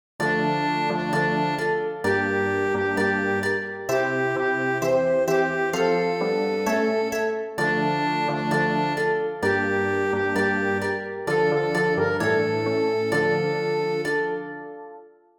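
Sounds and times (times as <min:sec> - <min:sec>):
orchestra: 0:00.2 - 0:14.5.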